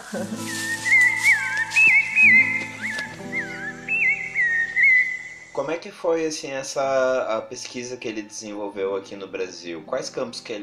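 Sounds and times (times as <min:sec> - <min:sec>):
rufous-bellied thrush song: 0:00.0 - 0:05.6
speech: 0:00.1 - 0:00.9, 0:05.6 - 0:10.6.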